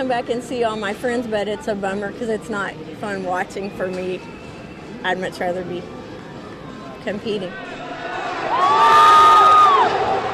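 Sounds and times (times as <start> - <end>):
speech: 0.0 - 4.4, 5.0 - 6.0, 7.0 - 7.7
crowd roaring and cheering in a rodeo arena as bull riding begins: 7.6 - 10.3
high whoop: 8.5 - 10.0.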